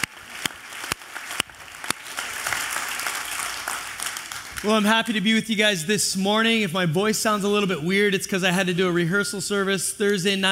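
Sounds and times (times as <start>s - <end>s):
audience clapping: 0.0s - 4.9s
speech: 4.6s - 10.4s.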